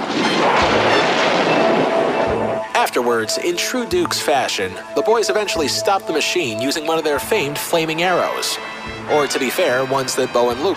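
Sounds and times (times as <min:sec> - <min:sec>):
flamethrower firing up: 0:00.0 - 0:02.7
speech: 0:02.8 - 0:10.7.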